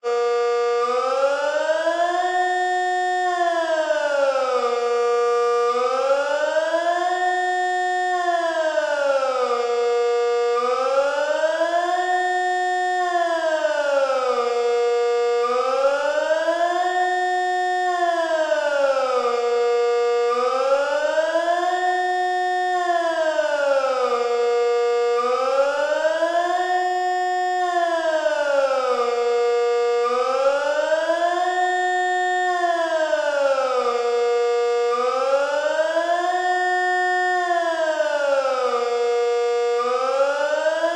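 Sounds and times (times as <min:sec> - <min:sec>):
general alarm: 0:00.0 - 0:40.9.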